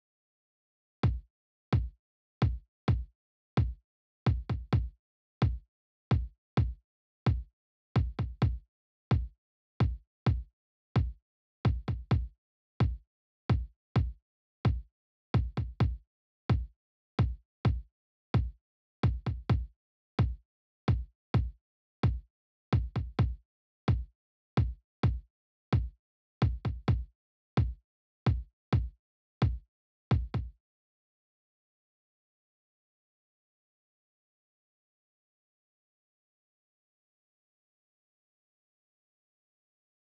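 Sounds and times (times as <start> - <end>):
kick drum: 1.0 - 30.6.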